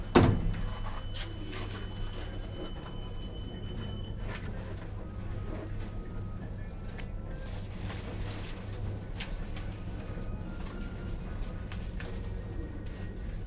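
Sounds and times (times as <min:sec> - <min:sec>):
hospital elevator doors sliding: 0:00.0 - 0:01.9
low mechanical hum of a hospital elevator: 0:00.0 - 0:13.4.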